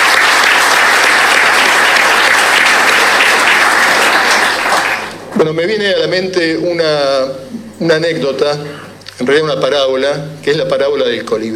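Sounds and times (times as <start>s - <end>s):
audience applause: 0.0s - 5.4s
speech: 5.6s - 11.5s.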